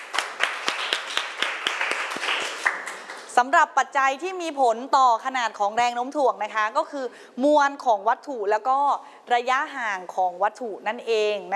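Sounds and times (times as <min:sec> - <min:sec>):
group of students clapping in a classroom: 0:00.0 - 0:03.3
speech: 0:03.4 - 0:11.5.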